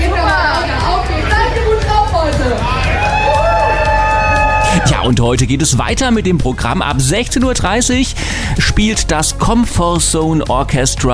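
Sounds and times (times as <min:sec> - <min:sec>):
dense babble of festival crowd chatter: 0:00.0 - 0:04.0
festival crowd cheering at an outdoor stage event in Trier, Germany: 0:00.0 - 0:05.2
speech: 0:05.1 - 0:11.1.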